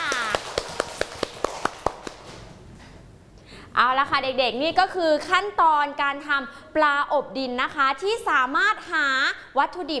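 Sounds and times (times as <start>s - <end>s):
children clapping hands in unison: 0.0s - 2.4s
speech: 3.8s - 9.9s.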